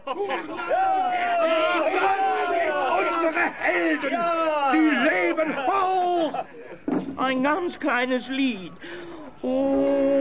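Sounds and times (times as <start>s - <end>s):
laughter: 0.0s - 7.1s, 8.8s - 10.2s
speech: 0.1s - 1.6s, 3.5s - 10.2s
Gallic villagers cheering and shouting a welcome for returning heroes: 0.1s - 6.5s.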